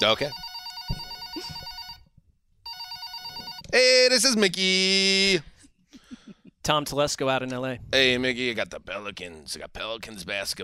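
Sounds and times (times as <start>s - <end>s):
speech: 0.0s - 0.4s, 3.7s - 5.5s, 6.6s - 10.6s
telephone ringing after a call is dialed: 0.0s - 3.7s.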